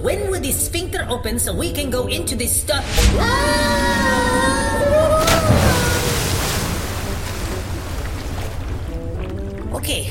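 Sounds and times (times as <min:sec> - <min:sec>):
speech: 0:00.0 - 0:05.1, 0:09.8 - 0:10.0
wet surging sloshing inside a stomach: 0:05.2 - 0:10.0.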